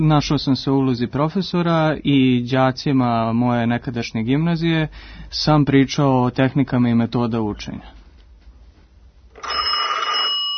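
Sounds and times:
speech: 0.0 - 8.0
telephone ringing with a bright electronic tone: 9.3 - 10.5.

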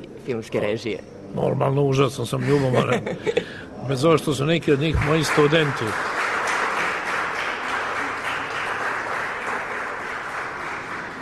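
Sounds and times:
speech: 0.3 - 6.2
studio audience applause at a televised talk show: 4.8 - 11.2.

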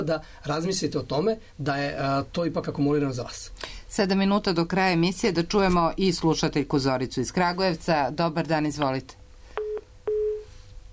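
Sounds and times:
speech: 0.0 - 9.2
phone line tones after a call is cut off: 9.6 - 10.5.

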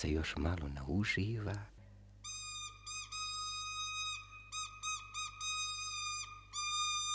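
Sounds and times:
speech: 0.0 - 1.7
toy rooster whistle blown: 2.2 - 7.1.

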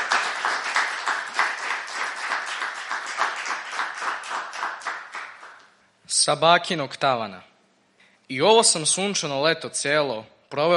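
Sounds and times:
festival audience clapping to welcome a poet: 0.0 - 5.8
speech: 6.2 - 7.5, 8.3 - 10.7.

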